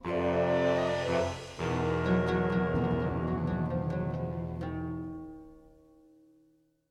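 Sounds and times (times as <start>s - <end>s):
death music stinger: 0.1s - 5.3s.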